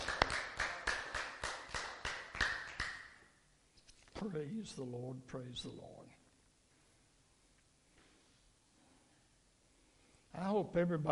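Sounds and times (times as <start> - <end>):
audience clapping in rhythm: 0.0 - 3.3
speech: 4.2 - 6.1, 10.4 - 11.1.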